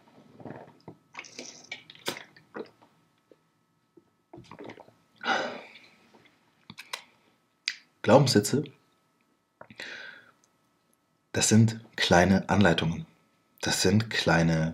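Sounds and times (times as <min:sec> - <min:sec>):
person sipping a drink and swallowing: 0:00.2 - 0:03.5, 0:04.3 - 0:05.0
person taking a quick breath: 0:05.2 - 0:06.0, 0:09.7 - 0:10.4
speech: 0:08.1 - 0:08.8, 0:11.4 - 0:14.7.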